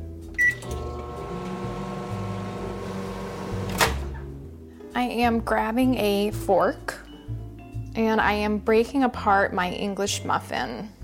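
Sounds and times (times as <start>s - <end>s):
microwave oven running: 0.4s - 4.0s
speech: 5.0s - 7.0s, 8.0s - 11.0s.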